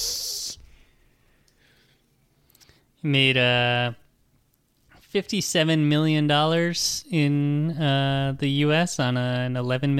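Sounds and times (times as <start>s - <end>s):
voice imitating a cat hissing: 0.0s - 0.6s
speech: 3.0s - 4.0s, 5.1s - 9.9s.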